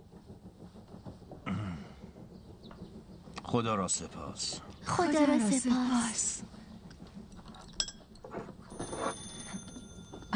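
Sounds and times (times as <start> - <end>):
speech: 3.5 - 6.5
telephone ringing: 8.7 - 10.3.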